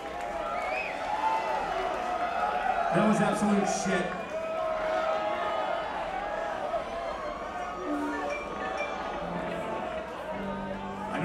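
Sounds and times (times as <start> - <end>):
audience cheering and clapping: 0.0 - 11.2
higher shouts and whistles from the audience: 0.4 - 1.6
speech: 2.9 - 4.2.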